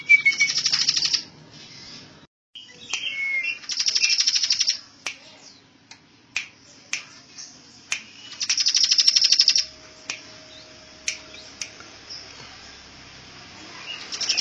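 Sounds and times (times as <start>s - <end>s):
bird singing trill, chirps and whistles: 0.1s - 1.3s, 2.6s - 4.8s, 8.1s - 9.7s, 13.7s - 14.3s.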